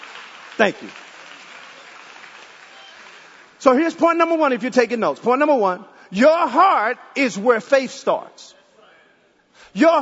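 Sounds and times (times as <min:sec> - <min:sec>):
audience applauding: 0:00.0 - 0:03.6
speech: 0:00.6 - 0:01.0, 0:03.6 - 0:08.6, 0:09.7 - 0:10.0.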